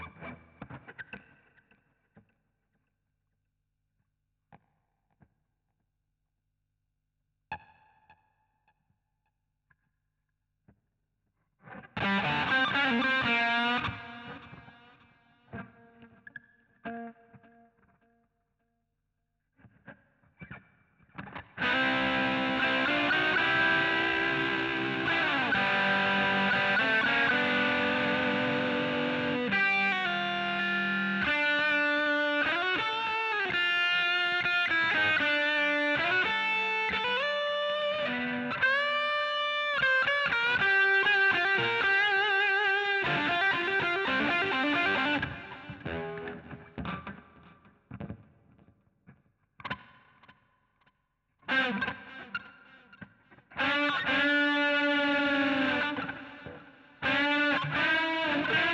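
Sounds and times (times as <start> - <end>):
guitar solo: 0.0 - 1.7, 11.6 - 17.9, 21.2 - 48.7, 51.4 - 58.7.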